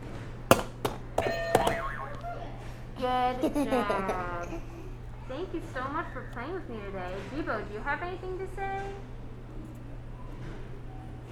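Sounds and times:
game buzzer being hit: 1.2 - 2.4
laughter: 1.7 - 6.5
speech: 3.1 - 4.7, 5.4 - 9.1.

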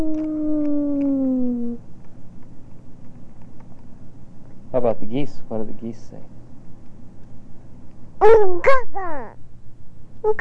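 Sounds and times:
speech: 0.0 - 0.2, 4.8 - 6.4, 8.2 - 9.4
voice imitating fire truck siren: 0.0 - 1.8.

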